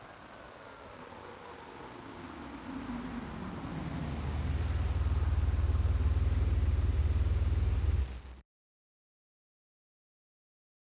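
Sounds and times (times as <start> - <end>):
Porsche 911 GT2 993 sports car engine: 2.6 - 8.3.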